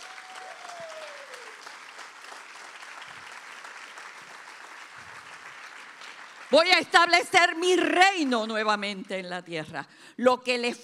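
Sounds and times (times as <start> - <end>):
audience applause: 0.0 - 6.7
speech: 6.5 - 10.8.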